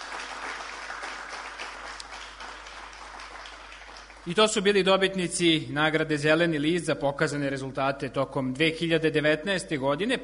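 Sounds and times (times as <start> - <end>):
audience applause for award winners at an environmental prize ceremony in Sremski Karlovci: 0.0 - 4.5
speech: 4.2 - 10.2.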